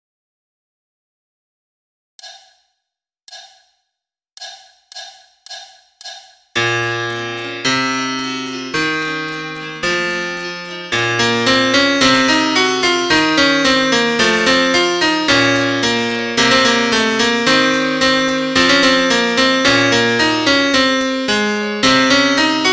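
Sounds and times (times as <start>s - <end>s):
solo piano: 6.6s - 22.7s.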